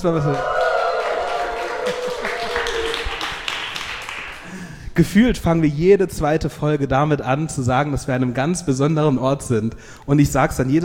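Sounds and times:
speech: 0.0 - 0.5, 5.0 - 10.8
live audience cheering: 0.0 - 4.4.

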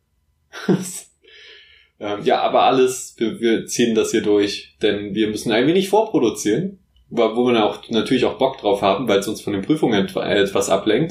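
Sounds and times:
person coughing: 0.6 - 1.0
speech: 0.7 - 1.1, 2.0 - 11.0
hissing breath: 1.2 - 2.0.

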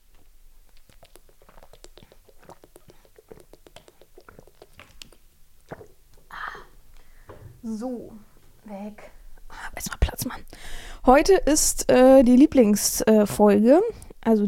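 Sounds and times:
person drinking from an ordinary water bottle: 0.0 - 7.3
speech: 7.6 - 9.2, 9.8 - 14.4.

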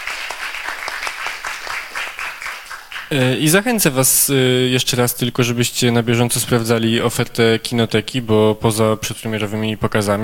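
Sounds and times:
audience applause: 0.0 - 3.3
speech: 3.1 - 10.2.

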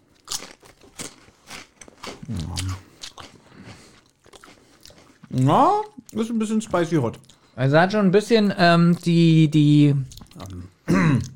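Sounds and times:
crunchy snack being bitten and chewed: 0.0 - 7.6, 10.0 - 11.3
speech: 5.4 - 10.2.

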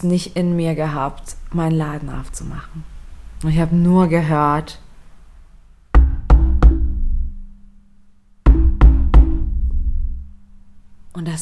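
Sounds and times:
speech: 0.0 - 4.8, 11.2 - 11.3
firm knocks on a door: 5.9 - 7.2, 8.4 - 10.1.

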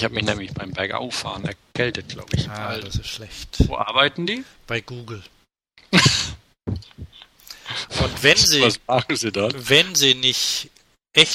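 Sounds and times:
speech: 0.0 - 5.4, 8.0 - 11.3
person coughing: 5.9 - 6.4.

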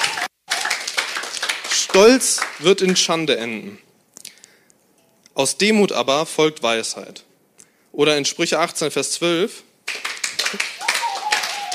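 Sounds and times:
audience clapping: 0.0 - 3.0, 9.9 - 11.7
speech: 2.0 - 3.8, 5.4 - 7.3, 8.0 - 9.7, 10.5 - 10.7.

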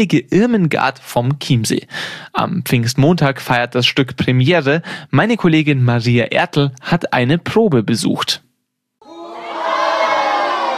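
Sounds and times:
speech: 0.0 - 8.4
crowd of performers cheering in a stage play rehearsal: 9.0 - 10.7.

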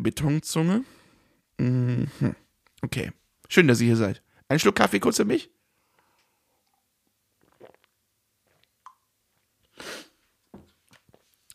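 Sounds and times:
speech: 0.0 - 1.0, 1.6 - 5.6
nose sniffing: 9.7 - 10.2.

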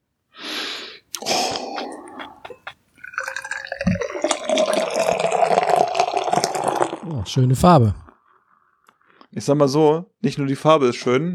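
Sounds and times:
beer pouring into a glass: 1.2 - 7.2
beer can cracking open with a hiss and click: 3.0 - 7.0
speech: 7.1 - 8.0, 9.4 - 11.3.

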